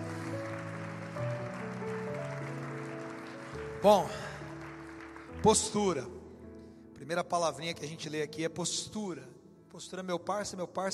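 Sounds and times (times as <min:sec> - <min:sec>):
audience applauding: 0:00.0 - 0:06.0
speech: 0:03.8 - 0:04.3, 0:05.4 - 0:06.2, 0:07.1 - 0:10.9.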